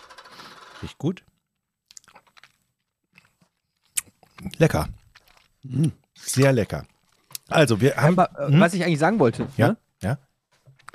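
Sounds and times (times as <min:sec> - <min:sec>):
speech: 0:00.8 - 0:01.3, 0:04.6 - 0:05.0, 0:05.6 - 0:06.9, 0:07.5 - 0:10.3
pack of organic apple-rhubarb fruit purée being opened: 0:01.9 - 0:05.6, 0:06.4 - 0:07.6.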